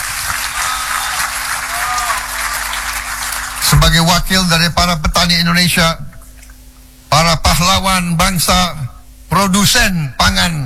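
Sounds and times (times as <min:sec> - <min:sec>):
crowd applause: 0:00.0 - 0:03.7
speech: 0:03.8 - 0:06.1, 0:07.6 - 0:10.6.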